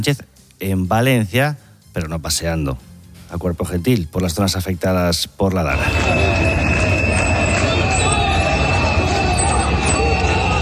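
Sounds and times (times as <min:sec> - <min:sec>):
speech: 0:00.0 - 0:07.2
crowd booing: 0:05.7 - 0:10.5.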